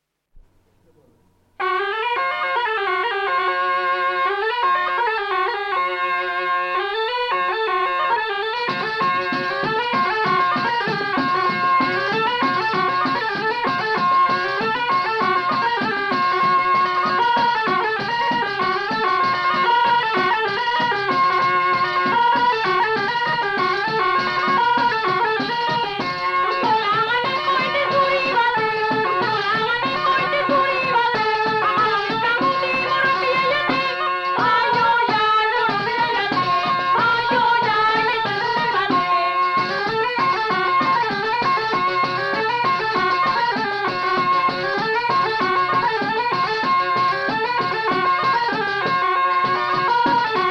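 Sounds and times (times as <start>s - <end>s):
Basque arin arin folk dance music: 0.0s - 50.4s.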